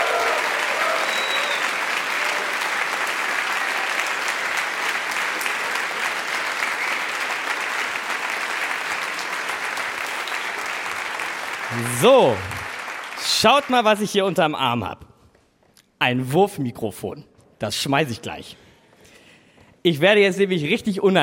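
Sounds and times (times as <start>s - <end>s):
large audience applauding: 0.0s - 14.4s
speech: 11.8s - 12.5s, 13.3s - 15.0s, 16.0s - 18.6s, 19.8s - 21.2s.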